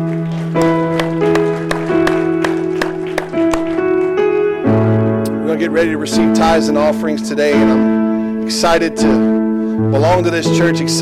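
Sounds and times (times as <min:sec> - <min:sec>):
audience clapping in a steady beat: 0:00.0 - 0:04.5
organ-like chords: 0:00.0 - 0:11.0
speech: 0:05.6 - 0:11.0.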